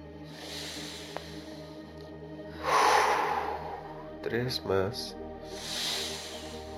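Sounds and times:
deep loud breath during a guided breathing exercise: 0.1 - 4.2, 5.4 - 6.7
speech: 4.2 - 5.8.

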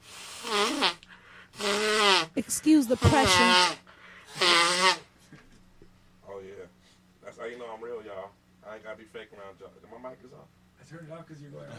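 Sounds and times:
person blowing nose: 0.0 - 5.1
speech: 2.4 - 3.8, 7.5 - 11.7.

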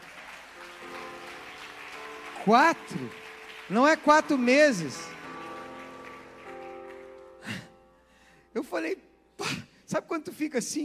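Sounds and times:
audience applauding: 0.0 - 7.7
speech: 2.4 - 5.1, 10.1 - 10.8.

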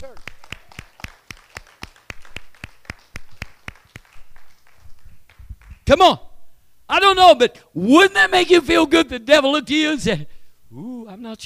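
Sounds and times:
audience clapping in rhythm: 0.0 - 5.9
speech: 5.9 - 6.3, 6.9 - 11.4.

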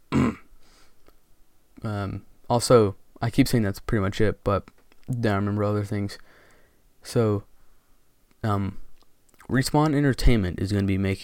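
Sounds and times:
person burping: 0.1 - 0.5
speech: 1.8 - 6.3, 7.0 - 7.5, 8.4 - 8.8, 9.5 - 11.2.

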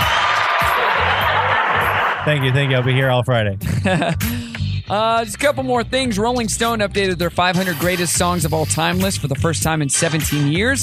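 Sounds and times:
crowd cheering sound effect: 0.0 - 3.2
laughter: 0.0 - 4.6
speech: 2.3 - 10.8.

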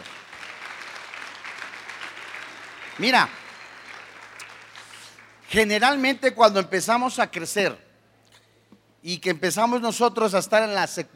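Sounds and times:
audience applause: 0.0 - 5.5
speech: 3.0 - 3.4, 5.5 - 7.8, 9.0 - 11.1.

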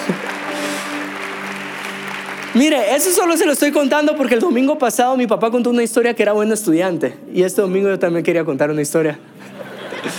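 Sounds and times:
audience applause: 0.0 - 4.4
speech: 2.6 - 9.6
laughter: 9.4 - 10.1.

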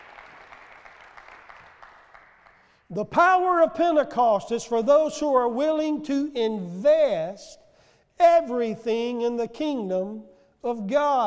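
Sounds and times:
audience clapping hands in praise: 0.0 - 2.9
speech: 2.9 - 7.6, 8.2 - 11.2.

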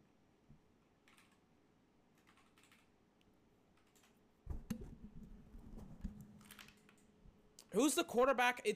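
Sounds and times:
typing on a computer keyboard with both hands: 1.0 - 1.4, 2.2 - 2.9, 3.8 - 4.2, 6.4 - 7.1
speech: 7.7 - 8.7.

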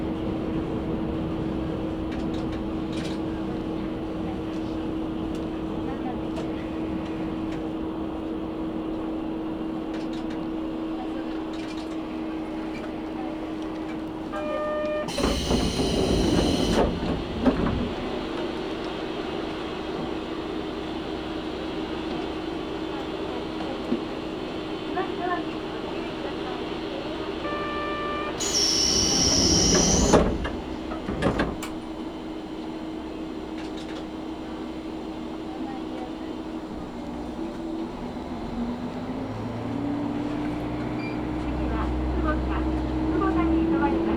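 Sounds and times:
train rumble on the Karatsu and Nagasaki Main lines: 0.0 - 44.1
bright squeal: 27.5 - 30.8.

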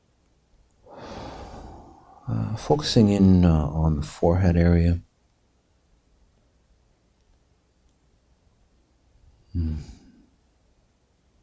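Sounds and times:
strong deep breath in during a guided breathing exercise: 0.9 - 2.6
speech: 2.3 - 5.1.

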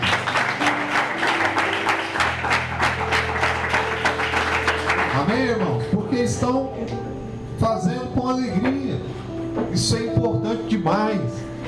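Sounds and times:
audience applauding: 0.0 - 5.8
low sustained keyboard chords: 0.0 - 11.6
speech: 5.4 - 9.2, 9.8 - 11.5.

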